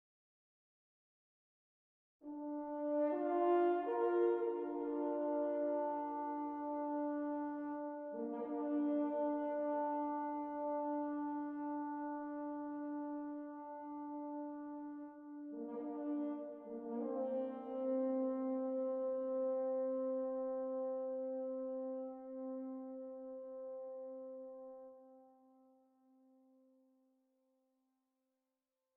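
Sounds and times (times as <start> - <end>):
horn playing at 58 bpm in 4-4 time: 2.3 - 24.9.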